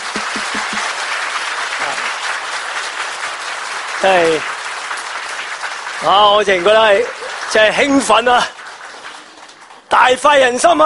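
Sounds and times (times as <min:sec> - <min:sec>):
audience applause: 0:00.0 - 0:10.8
speech: 0:04.0 - 0:04.5, 0:06.0 - 0:08.6, 0:10.0 - 0:10.8.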